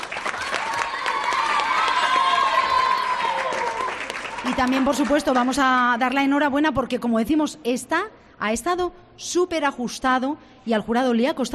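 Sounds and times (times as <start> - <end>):
audience applause: 0.0 - 5.6
speech: 4.5 - 11.5.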